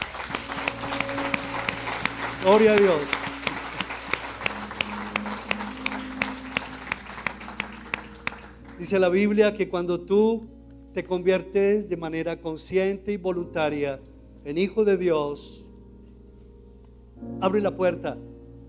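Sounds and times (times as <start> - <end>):
audience applause: 0.0 - 8.8
speech: 2.4 - 3.2, 8.8 - 15.6, 17.2 - 18.3.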